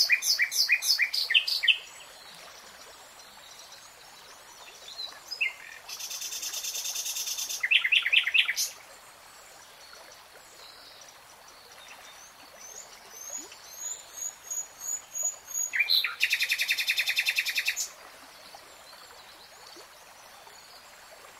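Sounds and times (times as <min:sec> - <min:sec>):
nightingale singing: 0:00.0 - 0:01.9, 0:05.3 - 0:08.7, 0:13.3 - 0:17.9.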